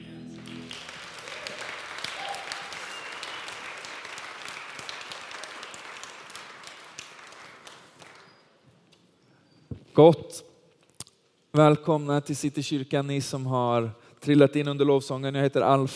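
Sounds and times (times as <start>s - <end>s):
church congregation applauding the worship team: 0.0s - 8.6s
speech: 10.0s - 10.5s, 11.6s - 15.9s.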